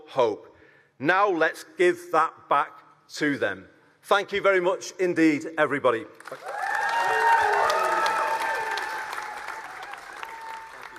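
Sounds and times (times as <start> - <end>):
speech: 0.1 - 6.6
audience applause after victory speech: 6.2 - 10.9
crowd cheering: 6.3 - 10.9.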